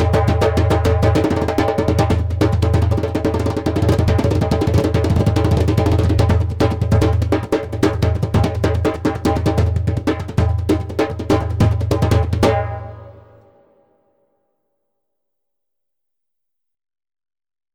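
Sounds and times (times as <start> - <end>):
instrumental music: 0.0 - 13.8.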